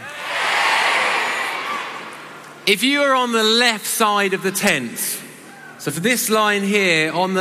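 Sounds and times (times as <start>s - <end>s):
crowd shouting hey: 0.0s - 2.3s
speech: 2.7s - 5.2s, 5.8s - 7.3s.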